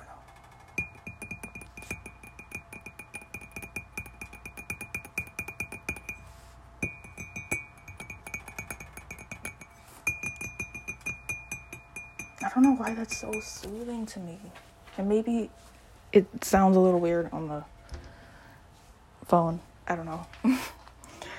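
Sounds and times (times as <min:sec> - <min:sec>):
tapping: 0:00.2 - 0:06.2, 0:06.8 - 0:13.8
speech: 0:12.6 - 0:17.8, 0:19.3 - 0:20.8.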